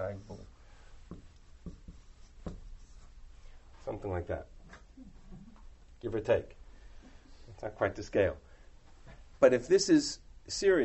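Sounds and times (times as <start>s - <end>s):
speech: 0.0s - 0.4s, 3.9s - 5.1s, 6.0s - 6.6s, 7.6s - 8.4s, 9.4s - 10.8s
drawing tool tapping the surface: 1.1s - 2.7s
hand drawing a map of Israel with scratchy strokes: 1.1s - 3.5s.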